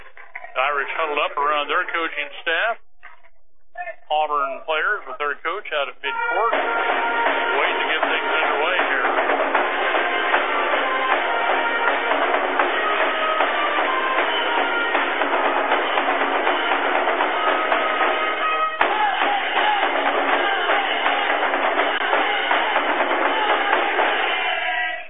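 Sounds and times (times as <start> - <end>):
speech: 0.7 - 2.9, 4.1 - 7.7
basketball arena crowd roaring: 6.2 - 25.0.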